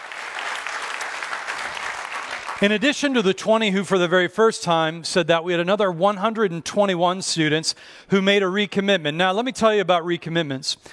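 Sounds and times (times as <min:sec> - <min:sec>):
audience applause at a church gathering: 0:00.0 - 0:03.0
speech: 0:02.6 - 0:10.9.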